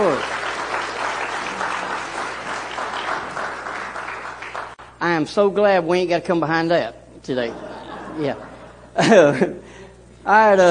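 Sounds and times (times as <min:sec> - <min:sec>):
audience applause for a praise and worship team: 0:00.0 - 0:04.8
speech: 0:05.2 - 0:10.6
laughter: 0:07.3 - 0:09.7.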